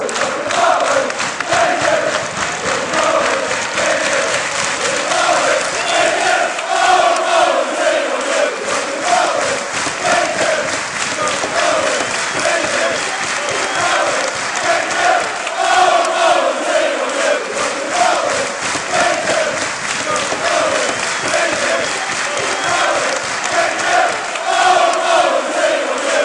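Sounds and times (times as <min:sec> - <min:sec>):
football fans chanting: 0:00.0 - 0:26.2.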